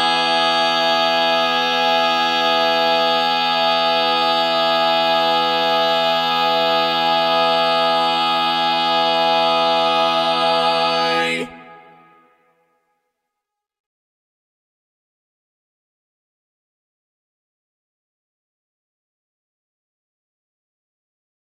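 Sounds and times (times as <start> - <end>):
tenor singing: 0.0 - 12.5.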